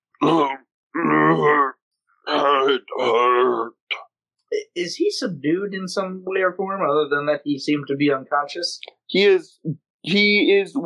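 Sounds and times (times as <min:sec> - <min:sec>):
speech: 0:00.2 - 0:01.7, 0:02.6 - 0:10.8
voice imitating groans of Belch, a huge creature with purple antlers: 0:00.2 - 0:01.7, 0:02.3 - 0:03.7.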